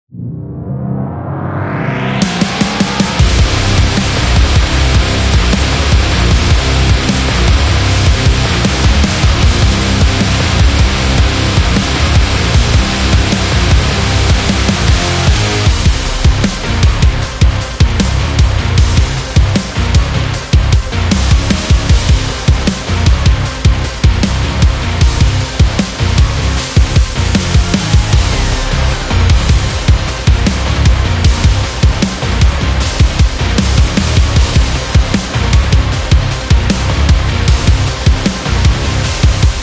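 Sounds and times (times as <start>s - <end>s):
extreme metal music: 0.4s - 39.6s.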